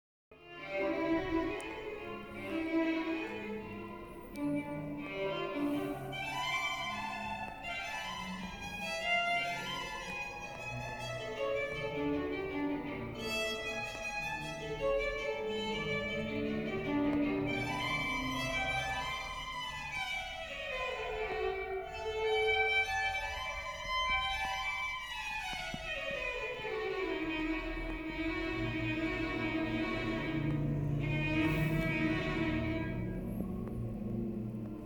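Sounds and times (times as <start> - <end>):
violin: 0.3 - 34.8.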